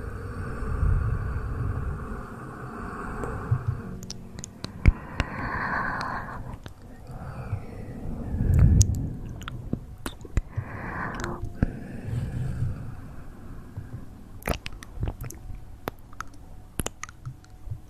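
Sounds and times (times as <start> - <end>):
soft breathy whooshes: 0.0 - 9.8, 10.4 - 14.4
wet mouth smacks, clicks and pops: 8.6 - 11.4, 14.4 - 17.4.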